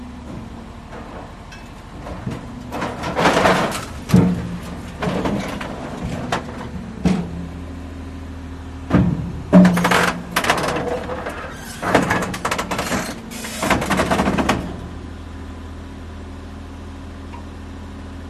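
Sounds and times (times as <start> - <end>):
excavator loading debris into a dump truck: 0.0 - 16.0
metal clanks: 0.2 - 7.4, 8.9 - 14.8.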